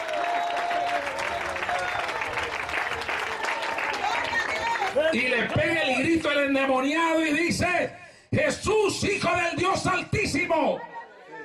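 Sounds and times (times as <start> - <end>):
audience applauding: 0.0 - 6.5
speech: 5.1 - 10.9.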